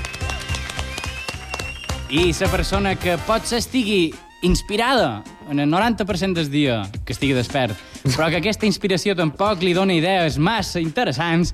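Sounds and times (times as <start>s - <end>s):
audience clapping in rhythm: 0.0s - 3.2s
speech: 2.1s - 11.5s.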